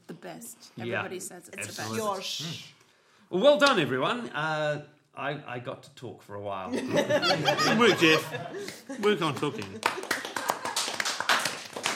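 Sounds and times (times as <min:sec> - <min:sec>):
speech: 0:00.2 - 0:10.3
laughter: 0:06.7 - 0:11.0
smattering of applause from a few people: 0:08.6 - 0:11.9.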